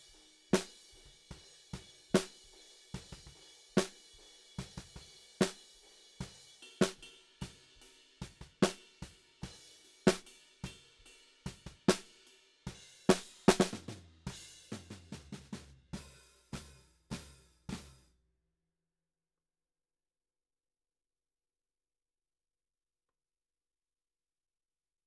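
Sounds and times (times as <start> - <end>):
snare drum: 0.0 - 8.9, 9.5 - 10.8, 11.5 - 12.2, 13.0 - 18.1.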